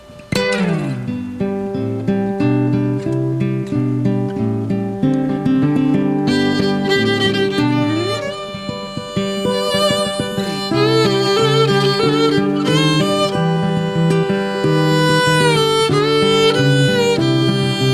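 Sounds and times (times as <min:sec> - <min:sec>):
guitar: 0:00.0 - 0:17.9
violin: 0:05.8 - 0:17.9.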